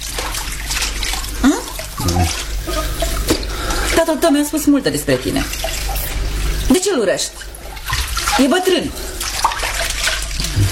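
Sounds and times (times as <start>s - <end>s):
running tap water while washing dishes: 0.0s - 10.7s
voice: 2.0s - 2.3s
speech: 4.0s - 5.8s, 6.8s - 7.5s, 8.4s - 9.1s.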